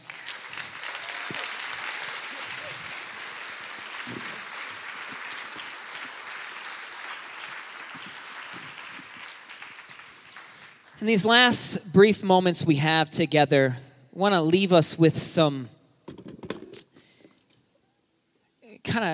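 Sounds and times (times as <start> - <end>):
audience applause: 0.0 - 11.6
speech: 11.0 - 15.8, 19.0 - 19.1.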